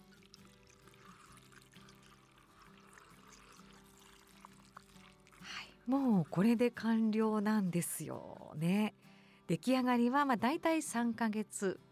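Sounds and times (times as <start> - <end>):
white liquor poured over rock sugar and lemon in a jar: 0.0 - 6.5
speech: 5.8 - 11.8.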